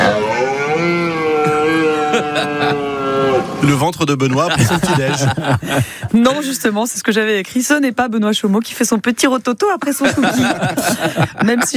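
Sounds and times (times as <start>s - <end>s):
red deer stag bellowing during rut: 0.0s - 3.6s
laughter: 1.5s - 3.1s, 4.1s - 6.6s, 9.8s - 11.7s
speech: 3.6s - 11.7s.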